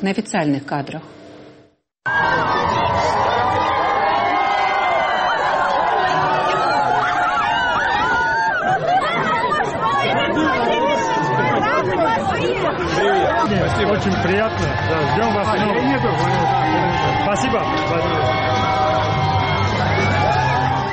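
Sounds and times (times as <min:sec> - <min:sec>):
speech: 0:00.0 - 0:01.2, 0:02.0 - 0:02.6, 0:13.7 - 0:19.2
higher shouts and cheers: 0:02.0 - 0:20.9
large crowd chattering: 0:02.1 - 0:20.9
laughter: 0:05.4 - 0:19.1.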